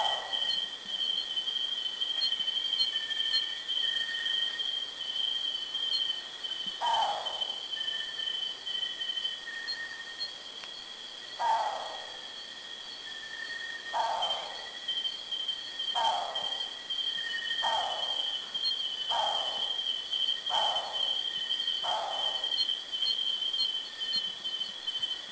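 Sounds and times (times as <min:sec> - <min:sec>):
Philippine frogmouth calling: 0:00.0 - 0:01.3, 0:06.7 - 0:08.2, 0:11.4 - 0:12.2, 0:13.9 - 0:15.1, 0:15.9 - 0:24.4
insects trilling: 0:00.0 - 0:25.3.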